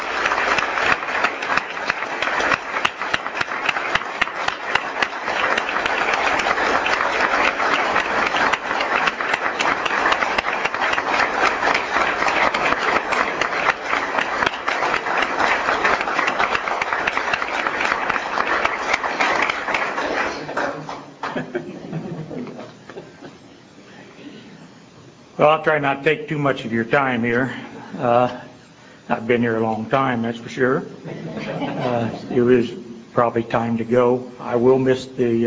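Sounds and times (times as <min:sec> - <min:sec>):
audience applause: 0:00.0 - 0:22.8
laughter: 0:20.0 - 0:23.4, 0:31.0 - 0:32.9
speech: 0:25.5 - 0:28.4, 0:29.3 - 0:31.0, 0:31.8 - 0:35.4.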